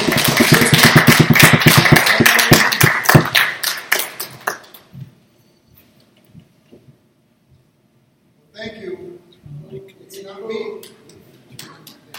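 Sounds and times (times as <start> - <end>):
audience applause: 0.0 - 4.9.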